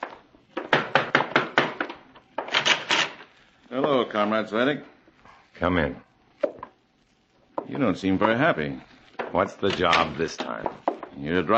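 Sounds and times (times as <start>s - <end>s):
firm knocking on a door: 0.6s - 1.9s
speech: 3.7s - 5.0s, 5.6s - 6.1s, 7.7s - 11.5s.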